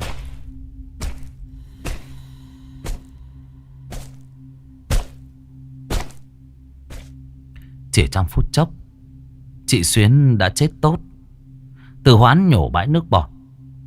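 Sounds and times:
heavy blows with a wooden log: 0.0s - 7.2s
low constant hum: 0.0s - 12.0s
speech: 8.0s - 8.8s, 9.7s - 11.1s, 12.0s - 13.3s.

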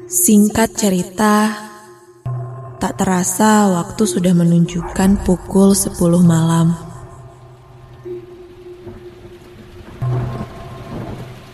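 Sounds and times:
speech: 0.1s - 1.6s, 2.8s - 6.8s
thunder rumbling: 3.3s - 11.5s
steady rain at night: 4.9s - 11.5s.

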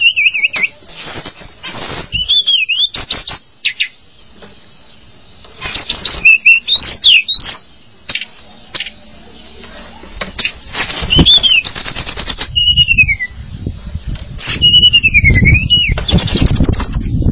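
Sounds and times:
bird delivering varied whistled notes: 0.0s - 0.8s, 2.1s - 3.9s, 5.8s - 7.6s, 10.9s - 13.4s, 14.5s - 17.2s.

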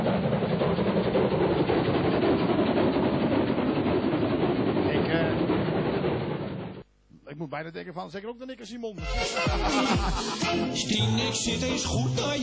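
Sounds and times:
train rumbling past at a station: 0.0s - 6.8s
speech: 7.5s - 12.4s
laughter: 9.2s - 10.8s.

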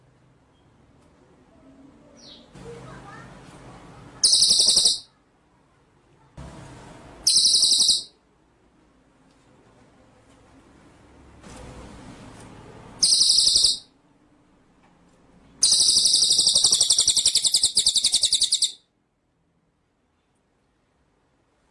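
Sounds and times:
white-rumped shama buzzy trill: 4.2s - 5.1s, 7.2s - 8.2s, 13.0s - 13.9s, 15.6s - 18.8s.

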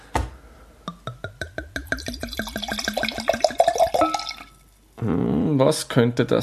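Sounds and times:
wine bottle opened: 0.9s - 4.6s
speech: 5.0s - 6.4s.

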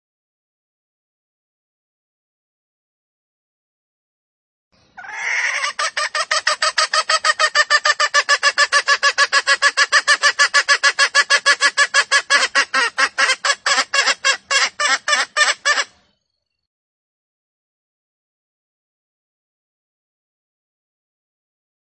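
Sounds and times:
female junglefowl clucking: 5.0s - 16.0s.

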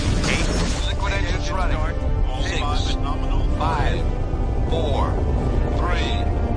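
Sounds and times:
voices talking: 0.3s - 6.4s
liquid rocket engines roaring during a launch countdown: 2.4s - 6.5s.

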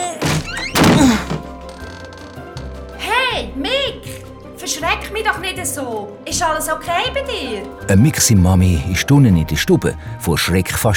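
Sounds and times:
door being shoved hard: 0.0s - 2.3s
soft music: 0.0s - 10.9s
speech: 3.4s - 10.9s.

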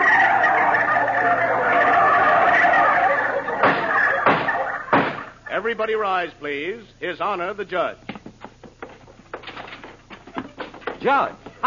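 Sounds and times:
jury of turkeys gobbling in a courtroom: 0.0s - 5.6s
speech: 5.6s - 8.1s, 11.0s - 11.6s.

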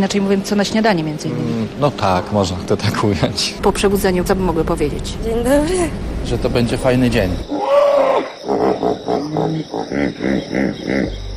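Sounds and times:
speech: 0.0s - 11.3s
hippopotamus honking grunts: 7.5s - 11.3s.

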